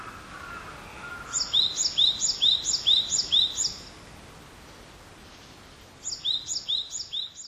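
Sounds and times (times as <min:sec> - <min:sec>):
faint background hiss: 0:00.0 - 0:07.4
great tit singing: 0:00.3 - 0:03.9, 0:06.0 - 0:07.4.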